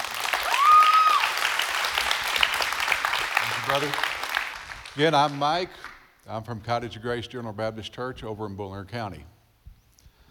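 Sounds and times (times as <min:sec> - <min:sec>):
congregation applause welcoming a guest speaker at a church celebration service: 0:00.0 - 0:06.1
speech: 0:03.7 - 0:04.1, 0:05.0 - 0:09.4.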